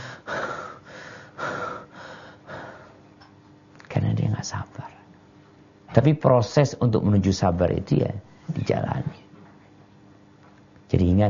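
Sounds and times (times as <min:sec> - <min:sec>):
person imitating heavy angry panting: 0:00.0 - 0:03.0
speech: 0:04.4 - 0:05.0, 0:05.9 - 0:09.2, 0:10.9 - 0:11.2.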